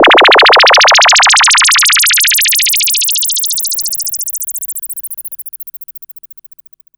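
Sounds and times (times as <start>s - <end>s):
filter rise: 0.0s - 3.7s.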